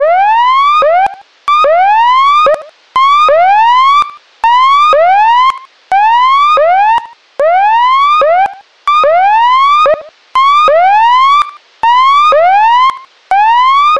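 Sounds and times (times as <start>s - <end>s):
warning alert siren: 0.0s - 13.9s.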